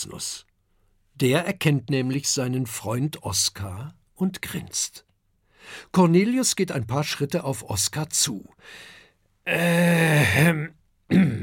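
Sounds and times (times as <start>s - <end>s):
speech: 0.0s - 0.5s, 1.2s - 11.4s
throat clearing: 9.5s - 11.4s.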